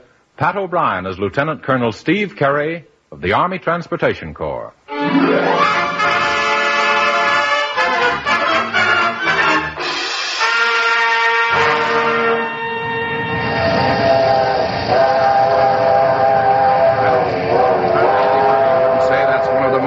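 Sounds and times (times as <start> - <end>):
speech: 0.4 - 6.1
big steam locomotive working: 5.2 - 19.8.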